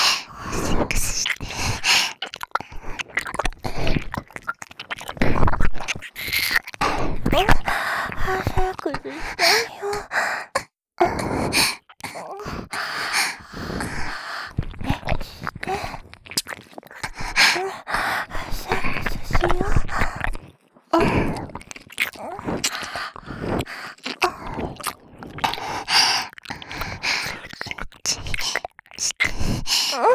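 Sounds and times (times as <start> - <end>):
ear licking sounds: 0.0 - 10.2, 11.3 - 30.1
person moaning: 29.9 - 30.1.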